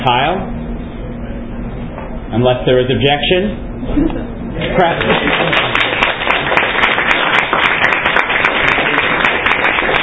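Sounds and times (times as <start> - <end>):
speech: 0.0 - 0.6, 2.3 - 5.6
audience clapping loudly: 4.7 - 10.0.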